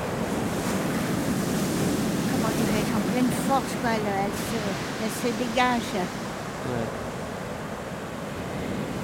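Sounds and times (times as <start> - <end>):
sea waves breaking forcefully on the shore: 0.0 - 9.0
speech: 3.5 - 7.1.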